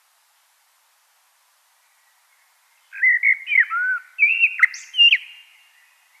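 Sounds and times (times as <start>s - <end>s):
common blackbird singing: 2.8s - 6.1s.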